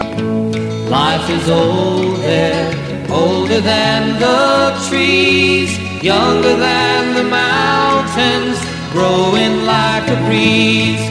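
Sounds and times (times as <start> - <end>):
country music: 0.0 - 11.0.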